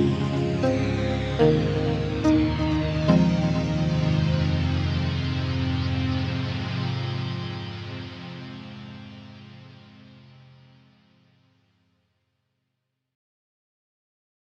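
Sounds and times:
keyboard playing: 0:00.0 - 0:07.6.

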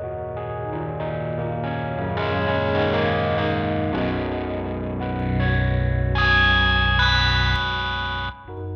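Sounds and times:
sea feedback noise: 0:00.2 - 0:08.6.

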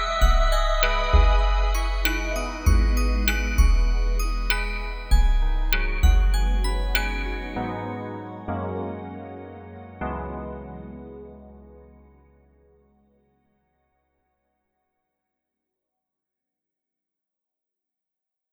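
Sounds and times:
chimes: 0:00.0 - 0:08.8.

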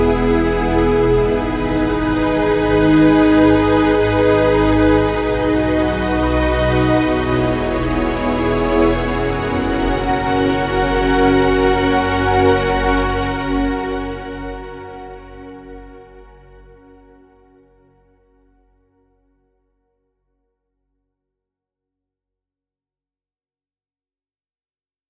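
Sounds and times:
strings: 0:00.0 - 0:17.4.

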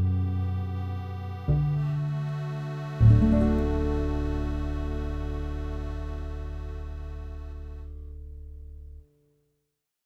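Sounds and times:
guitarron playing a tune: 0:00.0 - 0:08.4
guitar playing a tune: 0:01.0 - 0:08.4.

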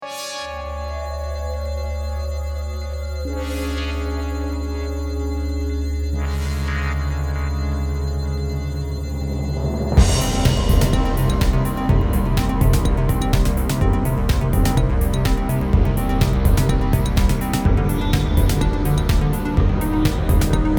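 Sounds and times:
electro music: 0:00.0 - 0:20.7.

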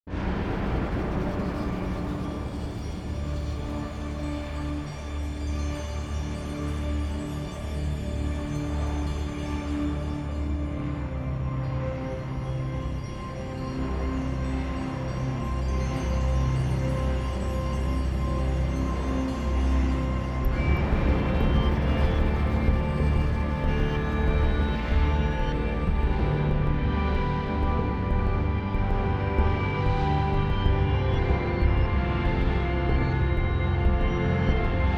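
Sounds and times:
drone metal music: 0:00.1 - 0:34.9.

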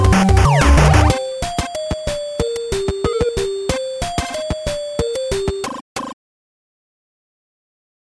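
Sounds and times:
electronic bleep drum: 0:00.1 - 0:05.7.

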